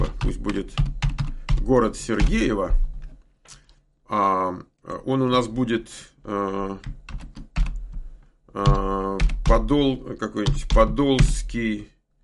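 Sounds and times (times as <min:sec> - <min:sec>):
typing on a computer keyboard: 0:00.0 - 0:02.5, 0:06.8 - 0:08.0, 0:08.6 - 0:11.3
speech: 0:00.4 - 0:01.0, 0:01.6 - 0:02.8, 0:03.5 - 0:07.4, 0:08.5 - 0:11.9.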